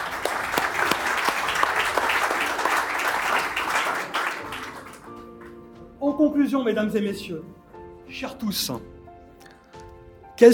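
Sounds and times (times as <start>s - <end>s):
audience clapping: 0.0s - 5.7s
speech: 6.4s - 8.9s, 10.4s - 10.5s.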